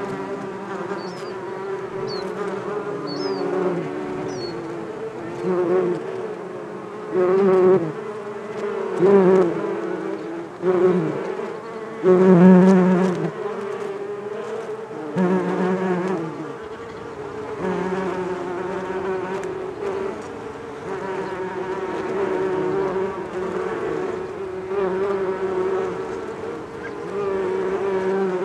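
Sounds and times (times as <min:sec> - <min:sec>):
bees buzzing: 0:00.0 - 0:28.4
bird chirps: 0:01.0 - 0:01.4, 0:02.1 - 0:02.3, 0:03.1 - 0:03.5, 0:04.3 - 0:04.6.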